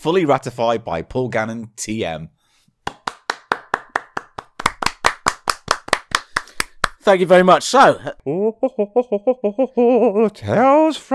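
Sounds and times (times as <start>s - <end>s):
speech: 0.0s - 3.0s, 7.0s - 11.1s
hand clapping: 2.8s - 7.0s.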